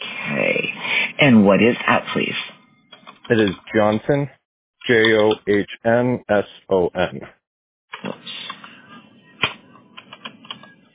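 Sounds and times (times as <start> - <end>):
speech: 1.2 - 2.4, 3.3 - 7.4
keystrokes on a keyboard: 2.8 - 4.0, 4.9 - 5.7, 9.4 - 10.8.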